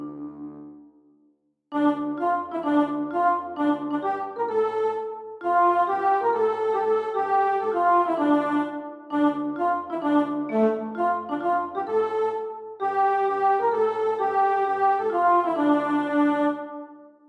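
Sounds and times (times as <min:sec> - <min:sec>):
midi music: 0:01.7 - 0:17.0.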